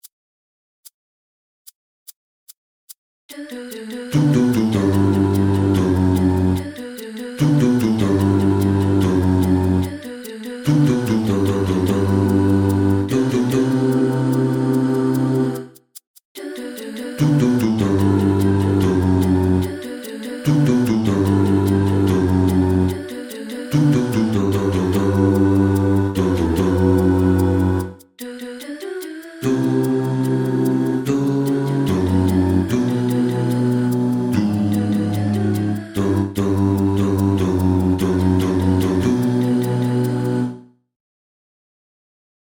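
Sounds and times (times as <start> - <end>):
bass: 4.2 - 6.7, 7.4 - 10.0, 10.7 - 15.7, 17.2 - 19.8, 20.5 - 23.0, 23.8 - 28.0, 29.4 - 40.6.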